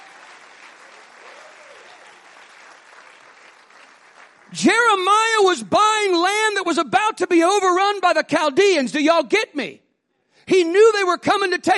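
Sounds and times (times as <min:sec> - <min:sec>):
audience clapping hands: 0:00.0 - 0:05.4
speech: 0:04.5 - 0:09.8, 0:10.5 - 0:11.7.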